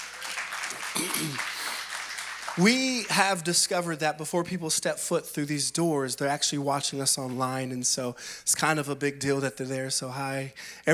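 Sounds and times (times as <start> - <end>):
audience applause at a church worship service: 0.0 - 3.5
speech: 1.0 - 1.5, 2.6 - 10.9.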